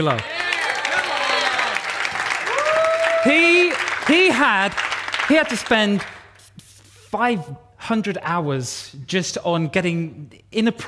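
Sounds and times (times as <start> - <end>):
speech: 0.0 - 0.3, 3.2 - 6.1, 7.1 - 10.8
audience applause: 0.0 - 6.1
audience whooping and cheering: 0.1 - 4.0.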